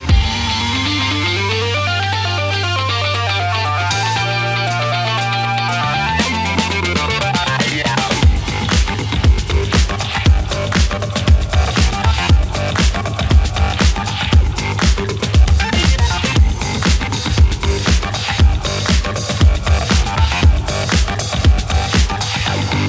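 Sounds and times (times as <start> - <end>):
intro music: 0.0 - 22.8.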